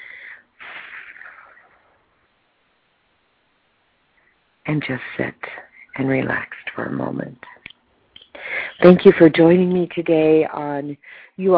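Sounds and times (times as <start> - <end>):
person blowing out a breath during a guided meditation exercise: 0.0 - 1.8
speech: 4.7 - 7.6, 8.8 - 11.5.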